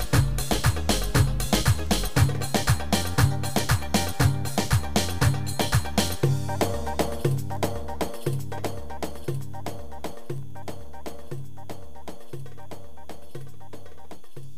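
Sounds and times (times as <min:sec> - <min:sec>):
2/4 Turkish oyun havasi dance music: 0:00.0 - 0:11.3.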